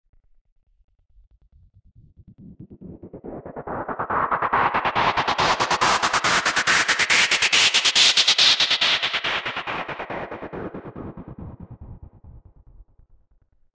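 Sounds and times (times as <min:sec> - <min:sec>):
delayed pink noise: 0:03.6 - 0:10.8.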